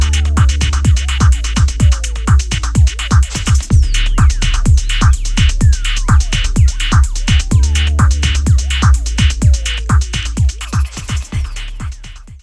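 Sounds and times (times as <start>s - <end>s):
methane bass: 0.0s - 12.4s.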